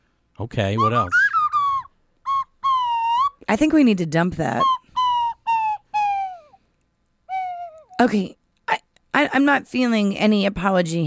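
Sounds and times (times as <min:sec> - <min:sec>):
speech: 0:00.4 - 0:01.2, 0:03.5 - 0:04.8, 0:08.0 - 0:08.4, 0:09.2 - 0:11.0
slide whistle: 0:00.8 - 0:03.5, 0:04.4 - 0:06.6, 0:07.3 - 0:08.0.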